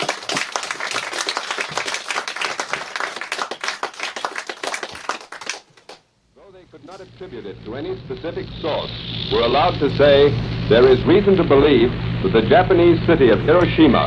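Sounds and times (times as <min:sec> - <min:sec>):
audience applause: 0:00.0 - 0:06.0
speech: 0:07.0 - 0:14.0.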